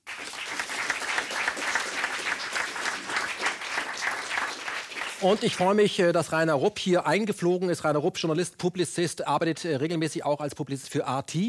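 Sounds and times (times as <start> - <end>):
audience applause: 0.0 - 6.0
speech: 5.2 - 11.4.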